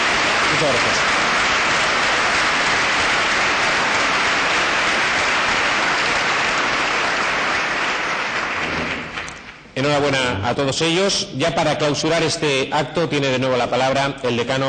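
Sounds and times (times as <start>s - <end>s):
audience applause: 0.0s - 9.7s
speech: 0.6s - 1.2s, 9.8s - 14.6s.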